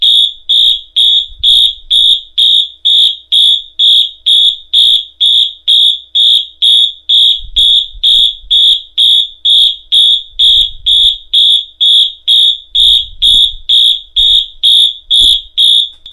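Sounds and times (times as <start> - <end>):
Wheelock MT4 115 WH alarm horn sounding march time pattern: 0.0 - 16.0.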